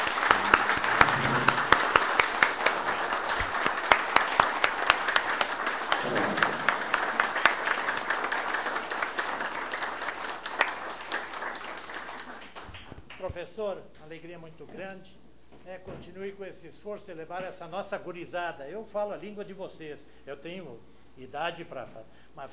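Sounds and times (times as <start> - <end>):
crowd applauding: 0.0 - 13.3
speech: 13.5 - 22.5.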